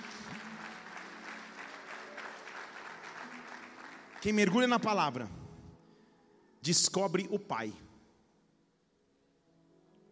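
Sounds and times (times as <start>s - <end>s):
audience applause: 0.0s - 5.2s
speech: 4.2s - 5.4s, 6.6s - 7.9s.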